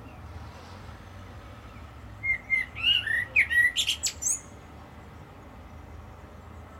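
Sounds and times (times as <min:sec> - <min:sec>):
common blackbird whistling: 0:02.2 - 0:04.5.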